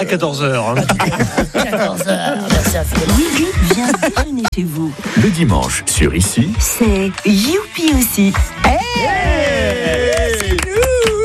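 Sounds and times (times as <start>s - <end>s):
laughter: 0.0s - 5.4s
speech: 0.0s - 10.0s
applause: 6.4s - 11.2s.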